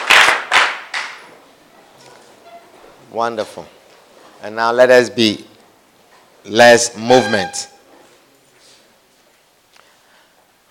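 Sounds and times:
audience clapping hands: 0.0s - 1.3s
speech: 3.1s - 3.8s, 4.4s - 5.5s, 6.4s - 7.7s.

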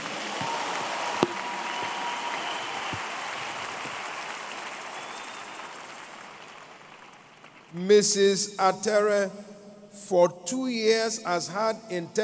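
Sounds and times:
audience applause: 0.0s - 7.7s
speech: 7.8s - 9.4s, 10.1s - 12.2s.

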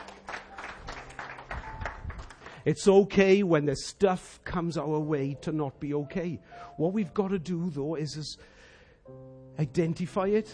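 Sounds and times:
audience applause: 0.0s - 2.6s
speech: 2.6s - 10.5s.

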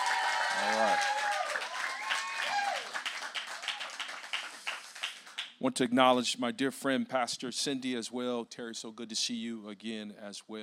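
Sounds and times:
cheering and shouts: 0.0s - 3.8s
audience clapping in celebration: 0.0s - 5.6s
speech: 5.6s - 10.6s.

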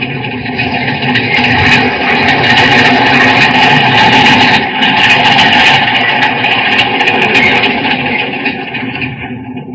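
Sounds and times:
rattling, screeching metallic clatter: 0.0s - 9.7s
underground train rounding a curve in tunnel: 0.0s - 9.7s.

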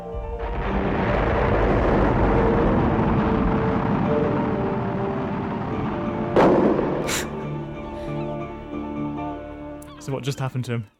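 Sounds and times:
explosion from film clip: 0.1s - 8.5s
rocket launch from film clip: 0.2s - 8.6s
speech: 10.1s - 10.9s.

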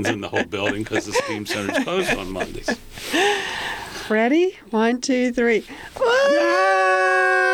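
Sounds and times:
laughter: 0.0s - 3.4s
speech: 0.0s - 6.6s
people screaming at the top of their lungs: 6.0s - 7.5s.

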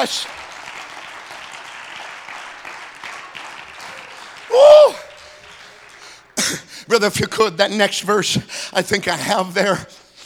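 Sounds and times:
speech: 0.0s - 0.4s, 4.5s - 5.1s, 6.5s - 10.0s
audience clapping hands: 0.0s - 6.6s.

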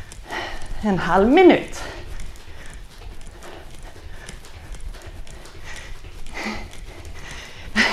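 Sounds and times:
speech: 0.8s - 2.0s
feet kicking sideways and jumping during a workout: 1.8s - 7.9s.

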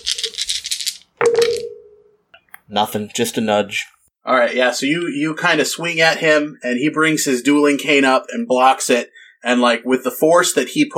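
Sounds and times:
dice rolling: 0.0s - 1.7s
speech: 2.7s - 10.9s.

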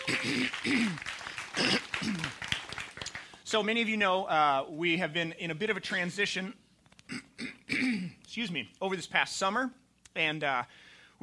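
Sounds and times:
church audience clapping for a new staff member: 0.0s - 3.4s
speech: 0.3s - 2.4s, 3.5s - 6.6s, 7.8s - 11.2s.

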